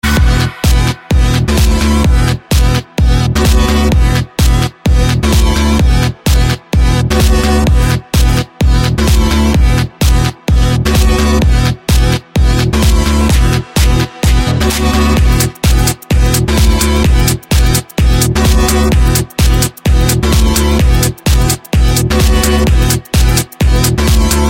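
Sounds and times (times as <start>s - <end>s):
bittersweet dance music: 0.0s - 24.4s.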